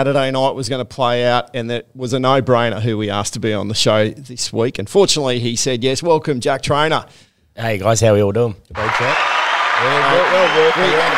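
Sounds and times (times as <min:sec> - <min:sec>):
speech: 0:00.0 - 0:11.1
applause: 0:08.8 - 0:11.1.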